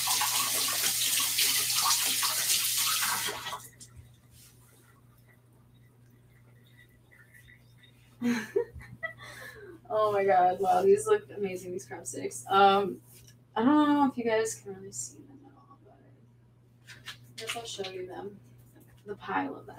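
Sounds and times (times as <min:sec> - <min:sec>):
hands washed under a running tap: 0:00.0 - 0:03.9
speech: 0:08.2 - 0:08.8, 0:09.9 - 0:15.2, 0:17.4 - 0:18.4, 0:19.1 - 0:19.7.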